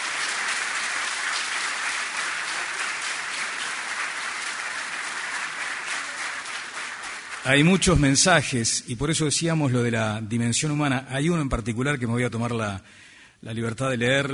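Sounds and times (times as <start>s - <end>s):
audience applause: 0.0s - 8.3s
speech: 7.4s - 14.3s.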